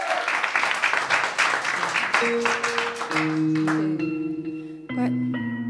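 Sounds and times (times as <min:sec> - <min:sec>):
audience applause welcoming a performer: 0:00.0 - 0:04.1
speech: 0:02.2 - 0:04.2, 0:05.0 - 0:05.6.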